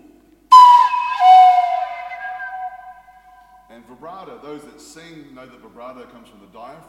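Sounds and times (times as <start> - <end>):
breathy Native American flute tone imitating a wolf howl: 0.5 - 3.3
speech: 3.9 - 6.8.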